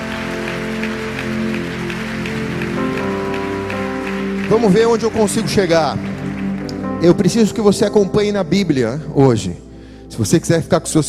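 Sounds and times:
audience applauding: 0.0s - 8.3s
speech: 4.5s - 6.1s, 7.0s - 11.0s.

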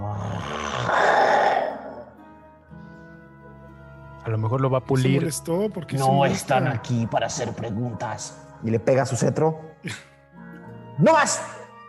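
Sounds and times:
voice imitating a king's growl: 0.0s - 2.2s
speech: 4.3s - 10.1s, 11.0s - 11.6s.

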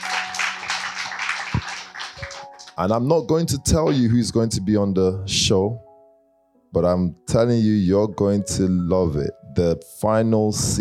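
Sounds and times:
applause: 0.0s - 3.1s
speech: 2.8s - 5.9s, 6.7s - 10.7s.

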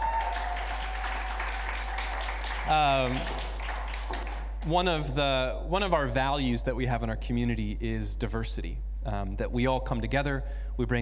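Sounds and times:
round of applause from a crowd: 0.0s - 4.6s
constant low electrical hum: 0.0s - 11.0s
speech: 2.6s - 3.5s, 4.6s - 11.0s.

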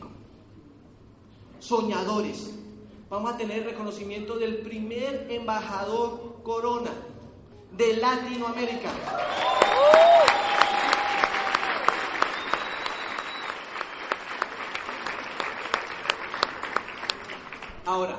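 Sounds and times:
speech: 1.6s - 7.1s, 7.7s - 10.7s
audience applause: 9.0s - 17.8s.

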